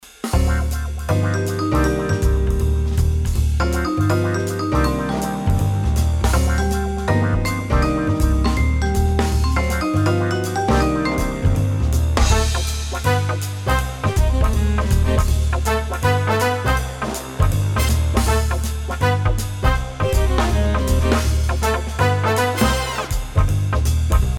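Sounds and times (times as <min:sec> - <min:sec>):
jazz ringtone: 0:00.4 - 0:23.4.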